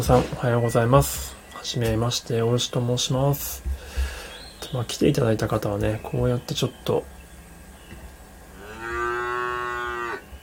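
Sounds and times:
speech: 0.0s - 4.1s, 4.7s - 7.2s
cow mooing: 8.6s - 10.3s.

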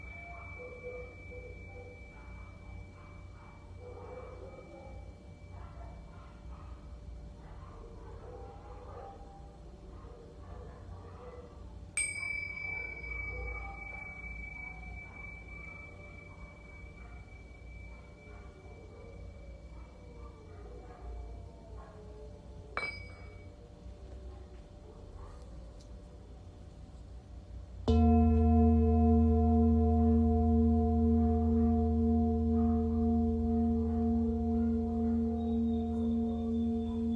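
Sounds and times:
Tibetan singing bowl struck and ringing: 0.0s - 7.3s, 12.0s - 21.4s, 22.8s - 23.6s, 27.8s - 37.1s.

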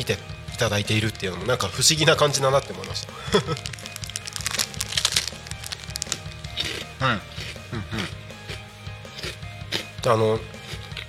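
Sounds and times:
speech: 0.0s - 3.9s, 7.0s - 8.2s, 10.0s - 10.5s
Japanese rice crackers (senbei) crunching as they are eaten: 2.6s - 6.9s.

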